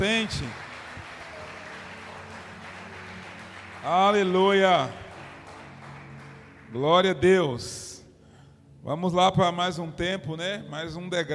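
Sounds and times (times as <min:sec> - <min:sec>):
speech: 0:00.0 - 0:00.7, 0:03.8 - 0:05.0, 0:06.7 - 0:07.8, 0:08.8 - 0:11.3
audience clapping: 0:00.0 - 0:07.3.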